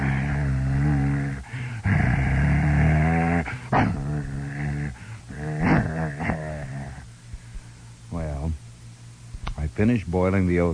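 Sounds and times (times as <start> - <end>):
dogs growling with low deep voices: 0.0 - 7.1
speech: 9.8 - 10.7.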